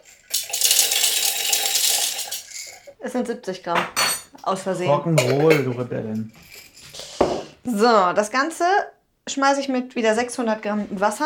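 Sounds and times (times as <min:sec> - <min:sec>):
dried soybeans poured into container: 0:00.0 - 0:02.9
speech: 0:03.0 - 0:06.4, 0:07.6 - 0:11.2.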